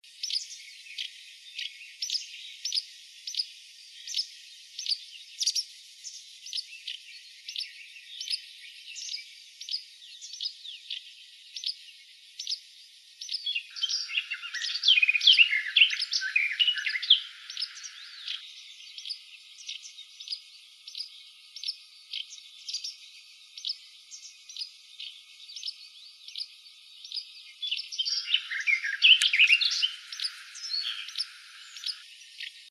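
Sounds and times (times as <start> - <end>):
wagtail warbler: 13.2 - 23.0, 27.1 - 32.7.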